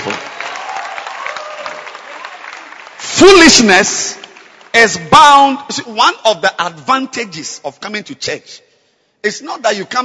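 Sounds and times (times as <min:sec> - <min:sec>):
people clapping for the film stars: 0:00.0 - 0:05.0
speech: 0:03.2 - 0:08.6, 0:09.2 - 0:10.0.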